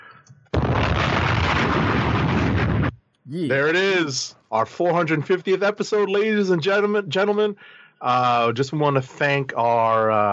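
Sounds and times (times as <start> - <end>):
bomb sound effect: 0.6 - 3.0
speech: 3.3 - 10.3.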